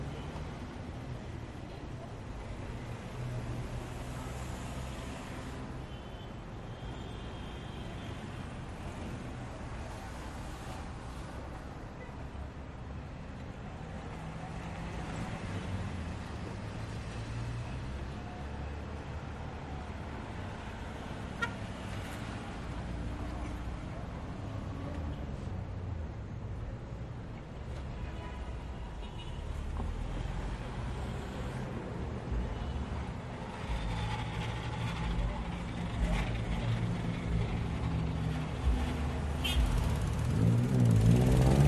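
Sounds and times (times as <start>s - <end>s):
street traffic: 0.0s - 41.6s
motorcycle: 33.4s - 41.6s
honking: 39.4s - 39.9s.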